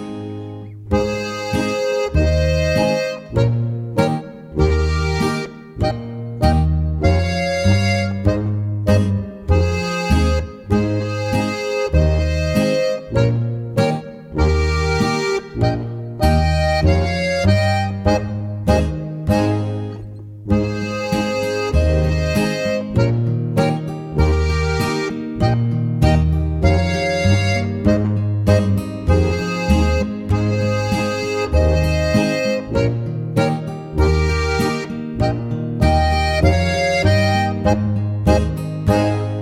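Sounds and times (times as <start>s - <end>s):
polka on three-row button accordion: 0.9s - 39.4s.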